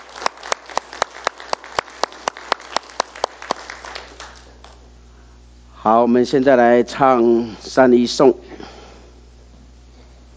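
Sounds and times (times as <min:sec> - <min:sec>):
warm audience applause: 0:00.0 - 0:04.8
speech: 0:05.8 - 0:08.4.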